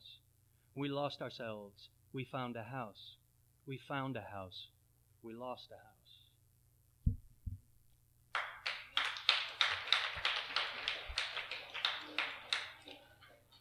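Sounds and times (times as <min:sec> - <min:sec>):
speech: 0:00.8 - 0:06.0
clapping: 0:08.3 - 0:13.4.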